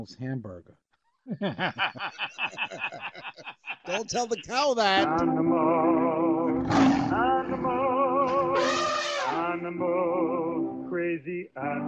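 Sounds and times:
speech: 0:00.0 - 0:07.9, 0:09.5 - 0:11.8
laughter: 0:01.3 - 0:05.1
cat yowling: 0:08.4 - 0:09.4.

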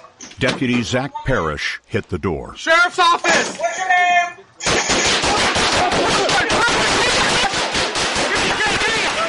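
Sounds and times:
speech: 0:00.4 - 0:05.2
gunfire in a shootout: 0:04.6 - 0:09.2.

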